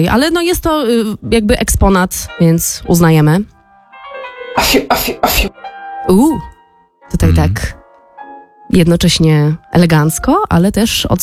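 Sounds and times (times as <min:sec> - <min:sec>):
speech: 0:00.0 - 0:03.5, 0:04.6 - 0:06.5, 0:07.1 - 0:07.8, 0:08.7 - 0:11.2
elegant exaggerated royal cough: 0:04.6 - 0:05.6.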